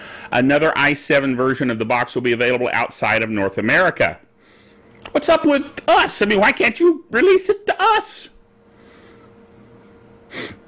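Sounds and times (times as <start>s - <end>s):
low hum: 0.0s - 10.6s
speech: 0.3s - 4.3s, 5.1s - 8.4s
nasal sniff: 10.3s - 10.6s.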